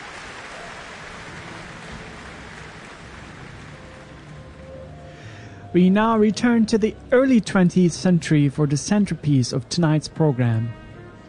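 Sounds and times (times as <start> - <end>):
concert audience applause: 0.0 - 5.2
speech: 5.7 - 10.8.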